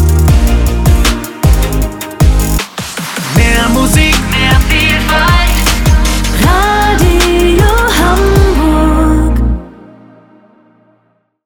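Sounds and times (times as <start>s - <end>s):
fast radio station theme music: 0.0s - 8.7s.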